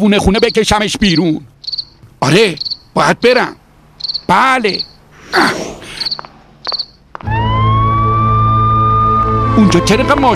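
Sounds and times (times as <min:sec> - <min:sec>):
speech: 0:00.0 - 0:03.6, 0:04.3 - 0:06.2, 0:09.6 - 0:10.3
high ambulance siren chirps: 0:00.2 - 0:02.0, 0:02.6 - 0:02.9, 0:04.0 - 0:05.0, 0:05.8 - 0:09.6
ambulance siren: 0:07.2 - 0:10.3.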